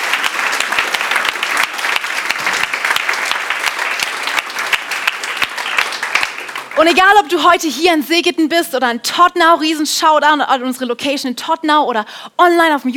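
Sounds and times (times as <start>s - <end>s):
audience clapping: 0.0s - 7.3s
speech: 6.8s - 12.9s.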